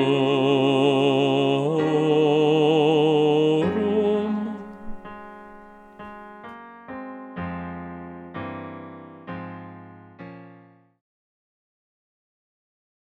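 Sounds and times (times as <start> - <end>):
bass singing a larghetto Credo: 0.0 - 6.4.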